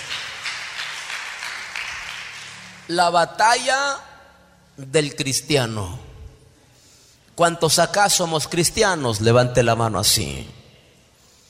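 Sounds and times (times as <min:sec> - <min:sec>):
audience applause: 0:00.0 - 0:02.9
speech: 0:02.9 - 0:04.1, 0:04.8 - 0:06.0, 0:07.4 - 0:10.6.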